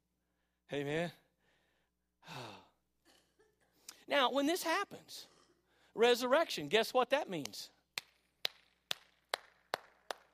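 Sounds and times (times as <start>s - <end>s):
speech: 0.7s - 1.2s, 4.1s - 5.3s, 6.0s - 7.8s
hand claps from a single person: 7.4s - 10.3s.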